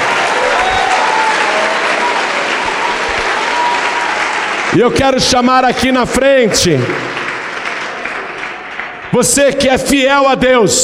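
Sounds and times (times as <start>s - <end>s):
crowd clapping: 0.0s - 10.6s
speech: 4.7s - 7.1s, 9.1s - 10.8s.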